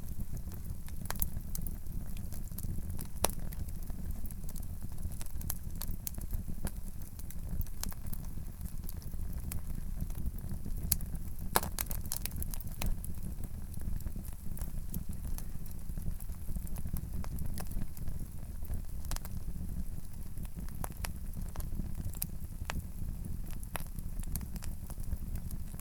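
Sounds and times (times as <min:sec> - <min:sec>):
stove in Sergiyev Posad: 0:00.0 - 0:25.7.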